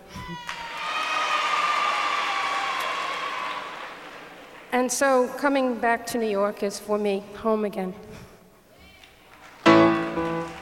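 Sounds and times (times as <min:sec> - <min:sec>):
speech: 0:00.3 - 0:00.5, 0:04.7 - 0:08.2
audience applause: 0:00.4 - 0:04.8, 0:09.4 - 0:10.6.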